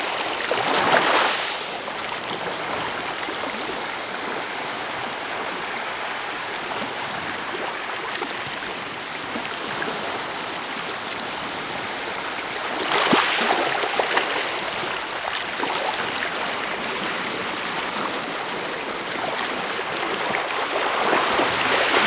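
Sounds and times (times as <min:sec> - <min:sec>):
waves breaking on the shore: 0:00.0 - 0:22.0.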